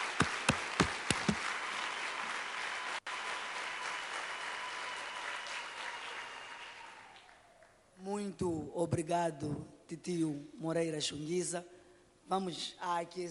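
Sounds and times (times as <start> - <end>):
audience applause for the children: 0.0 - 7.7
speech: 8.3 - 13.2.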